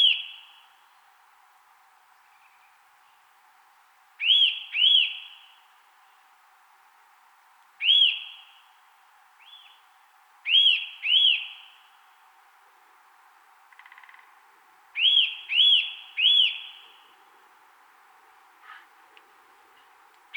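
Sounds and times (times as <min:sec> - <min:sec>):
Eurasian nuthatch Sitta europaea loud arched whistled call: 0:04.2 - 0:05.5, 0:07.8 - 0:08.6, 0:10.5 - 0:11.8, 0:15.0 - 0:17.0.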